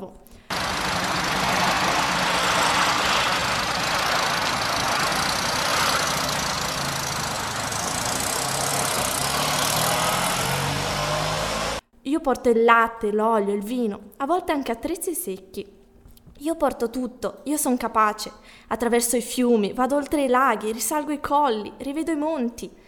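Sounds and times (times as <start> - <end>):
vehicle engine rumbling: 0.4 - 11.8
speech: 12.2 - 15.8, 16.4 - 22.8.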